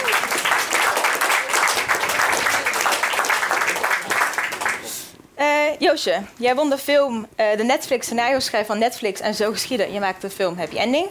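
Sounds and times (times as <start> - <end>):
audience applause: 0.0 - 5.0
speech: 5.8 - 11.0.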